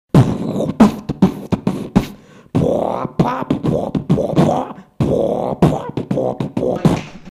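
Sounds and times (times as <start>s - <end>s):
beatbox: 0.1s - 7.2s.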